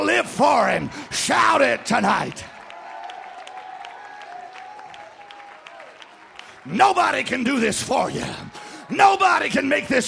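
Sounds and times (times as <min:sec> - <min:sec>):
speech: 0:00.2 - 0:02.5, 0:06.6 - 0:10.0
audience clapping hands: 0:00.3 - 0:10.0.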